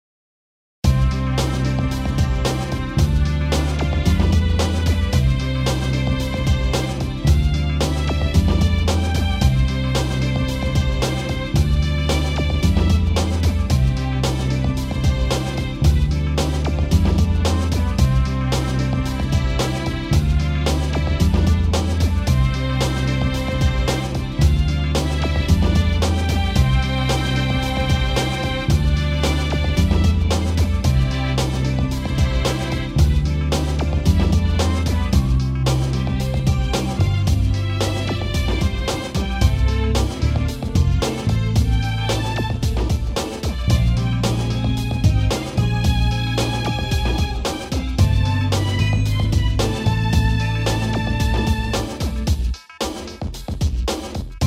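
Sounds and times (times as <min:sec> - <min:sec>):
string groove: 0:00.8 - 0:54.4.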